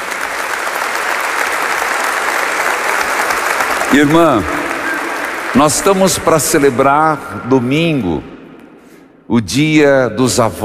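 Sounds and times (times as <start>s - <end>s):
crowd applause: 0.0s - 7.1s
speech: 4.0s - 4.6s, 5.5s - 8.3s, 9.3s - 10.6s.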